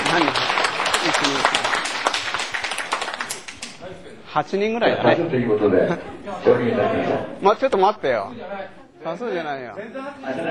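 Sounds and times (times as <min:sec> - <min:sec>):
meeting attendees clapping to approve a chairman: 0:00.0 - 0:03.9
speech: 0:00.2 - 0:01.8, 0:04.4 - 0:10.4.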